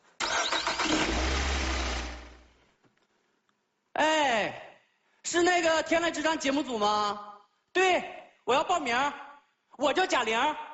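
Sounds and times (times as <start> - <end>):
car engine starting: 0.2 - 2.5
speech: 5.6 - 9.2, 9.8 - 10.7.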